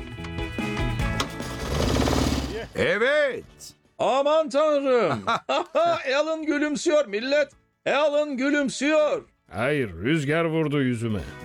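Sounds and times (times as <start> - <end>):
engine turning over after easy-start spray: 1.1 - 2.6
speech: 2.8 - 11.4
laughter: 5.1 - 6.1.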